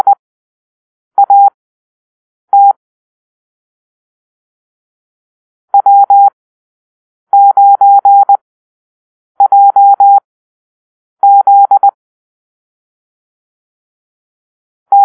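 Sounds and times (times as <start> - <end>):
morse code call-sign drill: 1.2 - 1.5, 2.5 - 2.8, 5.8 - 6.3, 7.4 - 8.4, 9.4 - 10.2, 11.2 - 12.0.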